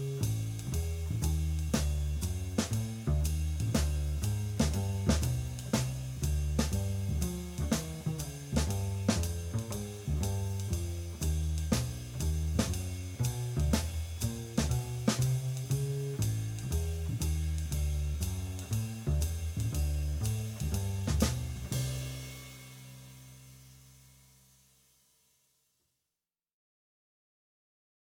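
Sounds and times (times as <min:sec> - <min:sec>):
rhythmic bop drumming: 0:00.0 - 0:24.0.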